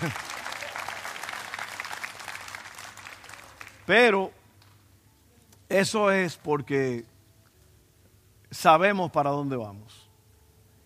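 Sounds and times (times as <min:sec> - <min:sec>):
speech: 0:00.0 - 0:00.3, 0:03.9 - 0:04.4, 0:05.7 - 0:07.1, 0:08.5 - 0:10.0
audience applause: 0:00.0 - 0:03.9.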